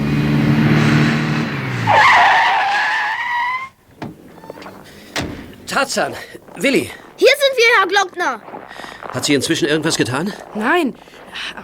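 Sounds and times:
police car engine rumbling: 0.0 - 11.6
police car tires screeching in a skid while braking: 0.0 - 11.6
short thump: 3.9 - 5.6
speech: 5.8 - 11.6.

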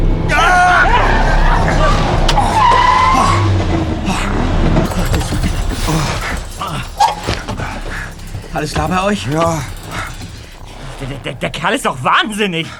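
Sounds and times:
car tires screeching while swerving and skidding: 0.0 - 12.7
loud rough car engine roar: 0.0 - 12.7
speech: 8.6 - 9.8, 11.0 - 12.7.

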